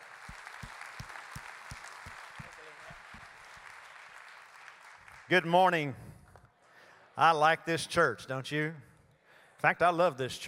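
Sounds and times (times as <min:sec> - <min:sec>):
church congregation applause welcoming a guest speaker: 0:00.0 - 0:06.0
speech: 0:05.3 - 0:06.0, 0:07.2 - 0:08.9, 0:09.6 - 0:10.4.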